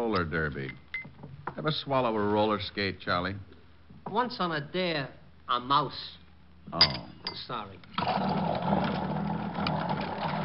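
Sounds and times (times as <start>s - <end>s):
speech: 0.0s - 0.8s, 1.6s - 3.5s, 4.1s - 8.8s
drink mixing machine whirring in a bar: 8.0s - 10.4s.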